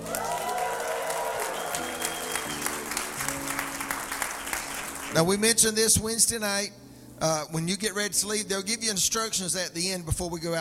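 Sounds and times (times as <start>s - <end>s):
audience applause: 0.0s - 5.2s
crowd cheering: 0.0s - 5.2s
sustained keyboard chords: 0.0s - 8.7s
speech: 5.2s - 10.5s.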